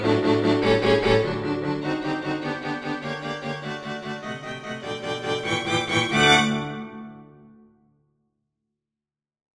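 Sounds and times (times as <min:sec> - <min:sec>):
string quartet: 0:00.0 - 0:07.1.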